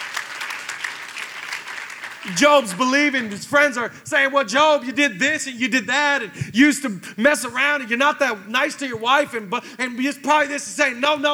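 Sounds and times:
crowd clapping: 0.0 - 3.6
speech: 2.2 - 11.3.

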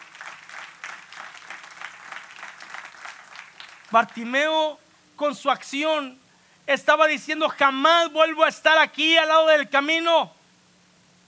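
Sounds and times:
audience applauding: 0.0 - 4.2
speech: 3.9 - 10.4.

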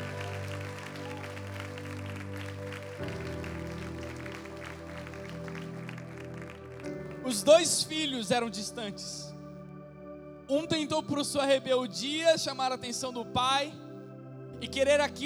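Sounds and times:
audience applause: 0.0 - 7.8
speech: 7.3 - 9.3, 10.5 - 13.8, 14.6 - 15.2.

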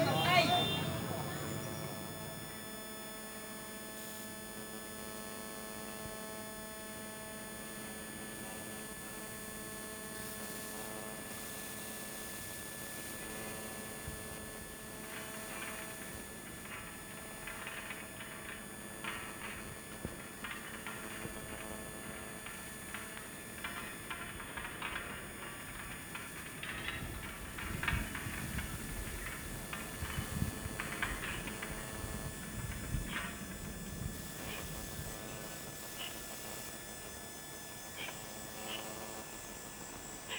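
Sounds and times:
murmuring voices: 0.0 - 2.2
steady hum of several unchanging tones: 0.0 - 40.3
thin insect drone: 0.0 - 40.3.

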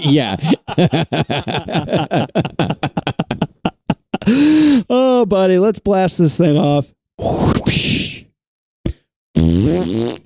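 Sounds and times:
speech: 0.0 - 2.7, 5.2 - 8.2, 9.4 - 10.2
laughter: 0.0 - 4.4
loud fart noises: 8.9 - 10.2.

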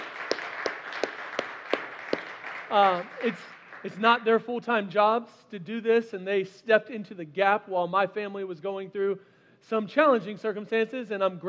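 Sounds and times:
audience applause: 0.0 - 4.0
speech: 2.7 - 11.4.

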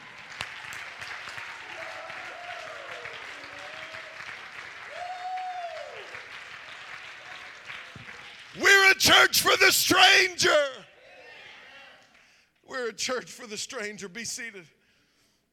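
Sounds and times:
crowd clapping: 0.0 - 9.3
speech: 9.0 - 10.8, 12.9 - 14.8.

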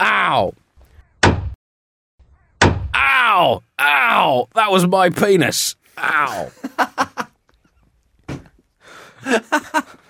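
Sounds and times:
speech: 0.0 - 0.6, 3.4 - 6.9, 9.2 - 10.0
hammer thwack: 1.2 - 1.6, 2.6 - 3.0
laughter: 6.2 - 7.4, 9.2 - 10.0.

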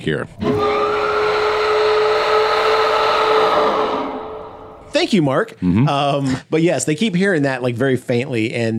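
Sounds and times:
speech: 0.0 - 0.8, 4.9 - 8.7
deep guttural horn-like whistle: 0.4 - 4.9.

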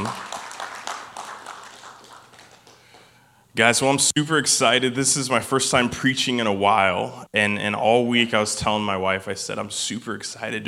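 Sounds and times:
audience hand clapping: 0.0 - 3.2
speech: 3.6 - 10.6.

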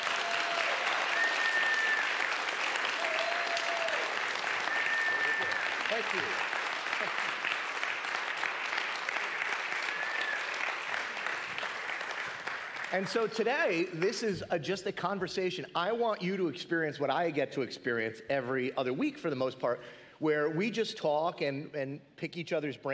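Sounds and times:
crowd applause at Mendham Hills Community Church welcoming a returning guest: 0.0 - 13.8
speech: 6.0 - 7.2, 12.9 - 22.9.

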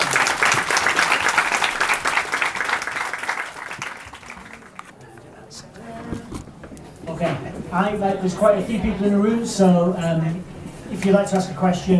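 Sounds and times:
audience applause: 0.0 - 4.9
speech: 7.8 - 11.9.

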